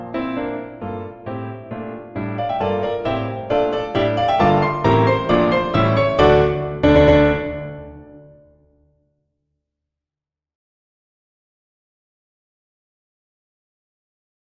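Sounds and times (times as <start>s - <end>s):
musical accompaniment: 0.0s - 8.7s.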